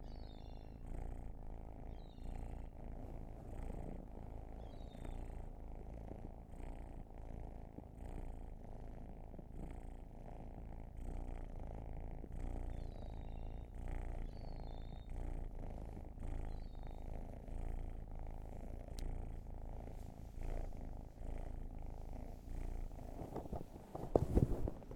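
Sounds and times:
cat purring: 0.0 - 24.9
handling noise: 22.9 - 24.9.

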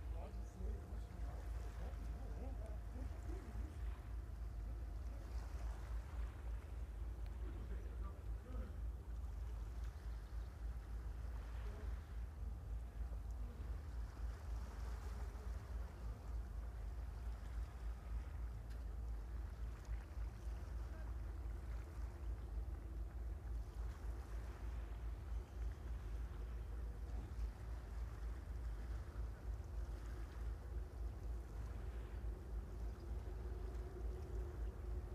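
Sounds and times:
River Tagus water in Lisbon Portugal: 0.0 - 35.1.

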